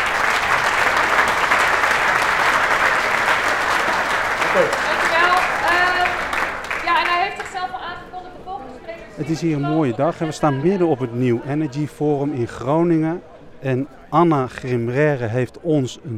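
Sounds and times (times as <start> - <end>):
audience applause: 0.0 - 7.7
speech: 4.6 - 4.8, 9.2 - 16.1.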